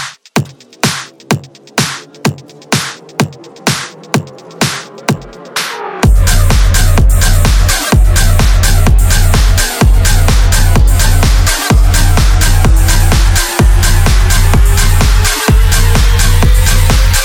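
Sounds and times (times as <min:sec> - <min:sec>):
rumbling bassline: 0:00.3 - 0:17.2.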